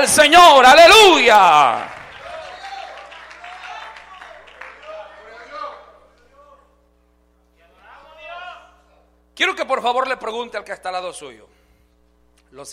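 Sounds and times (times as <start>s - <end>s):
speech: 0.0s - 2.0s, 9.4s - 11.5s, 12.5s - 12.7s
audience applause: 1.4s - 5.7s.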